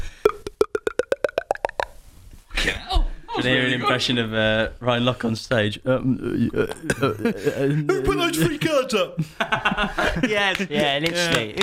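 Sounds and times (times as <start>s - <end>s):
vocal imitation of water pouring into cup: 0.3s - 2.0s
speech: 3.4s - 11.6s
laughter: 6.7s - 11.6s.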